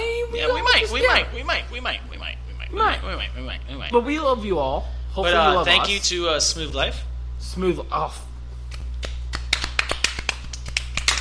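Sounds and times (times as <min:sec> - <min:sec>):
low hum: 0:00.0 - 0:09.5
speech: 0:00.8 - 0:08.3
golf clap: 0:08.7 - 0:11.2.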